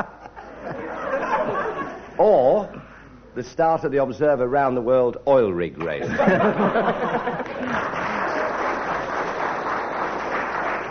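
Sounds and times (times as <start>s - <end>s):
laughter: 0.0s - 2.2s, 6.0s - 9.4s
speech: 2.2s - 2.8s, 3.4s - 8.0s
ripple of applause: 7.3s - 10.8s.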